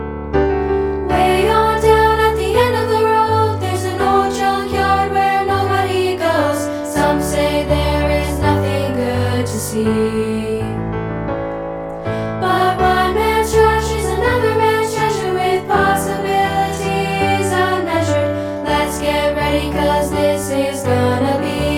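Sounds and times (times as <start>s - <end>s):
piano: 0.0s - 21.7s.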